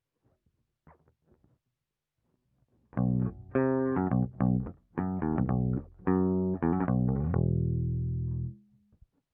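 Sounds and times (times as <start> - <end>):
bass guitar recorded by direct input: 3.0 - 8.7.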